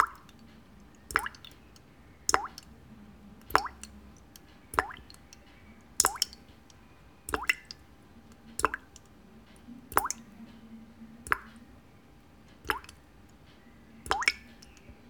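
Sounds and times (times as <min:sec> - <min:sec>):
water dripping: 0:00.0 - 0:15.0.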